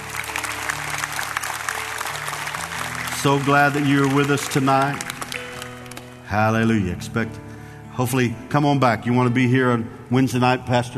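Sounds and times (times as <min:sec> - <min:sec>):
audience applause and hand clapping: 0:00.0 - 0:06.3
speech: 0:03.2 - 0:05.1, 0:06.3 - 0:07.4, 0:08.0 - 0:10.9.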